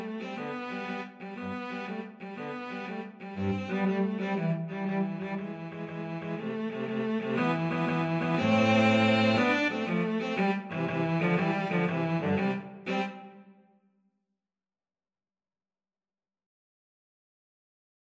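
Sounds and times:
cello trio: 0.0 - 13.4.

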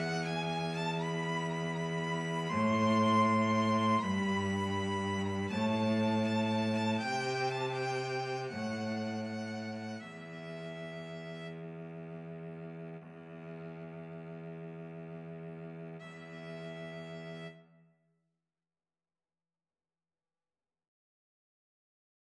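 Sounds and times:
cello: 0.0 - 17.8
two violins: 0.0 - 17.8.

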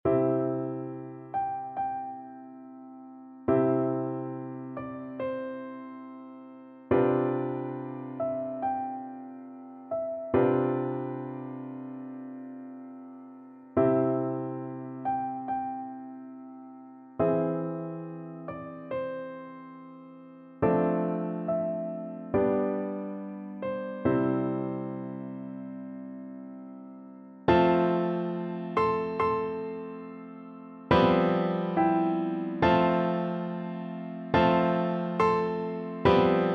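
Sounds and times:
piano duet of a classical largo: 0.0 - 36.5.

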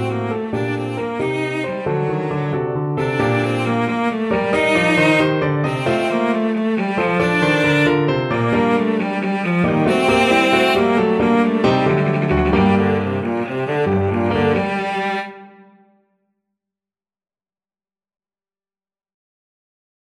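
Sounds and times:
violoncello: 0.0 - 15.9.

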